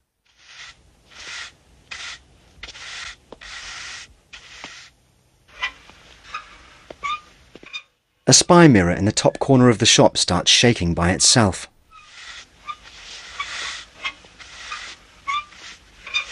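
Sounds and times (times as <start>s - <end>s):
broom sweeping a floor: 0.2s - 7.8s, 11.9s - 16.3s
speech: 8.3s - 11.7s.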